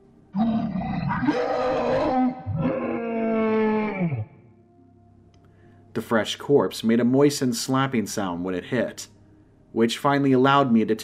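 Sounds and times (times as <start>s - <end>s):
creature howling: 0.4s - 4.5s
speech: 1.2s - 2.0s, 6.0s - 9.2s, 9.8s - 11.0s.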